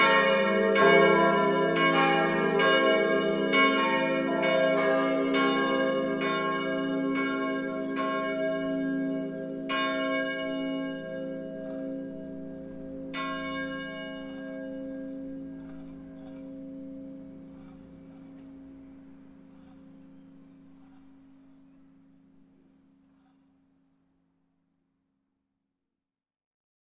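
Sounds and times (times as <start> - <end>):
bells ringing: 0.0 - 22.8.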